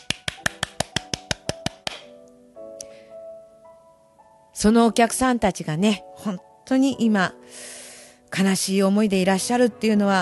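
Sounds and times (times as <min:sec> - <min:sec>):
hand clapping: 0:00.0 - 0:02.2
speech: 0:04.6 - 0:10.2.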